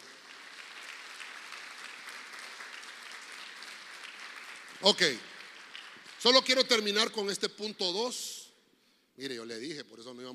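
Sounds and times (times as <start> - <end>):
audience clapping: 0.0 - 7.7
speech: 4.8 - 5.3, 6.2 - 8.4, 9.2 - 10.3.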